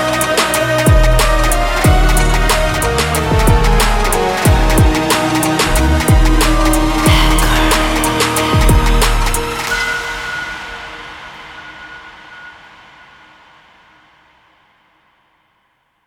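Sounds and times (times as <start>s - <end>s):
theme music: 0.0s - 11.9s.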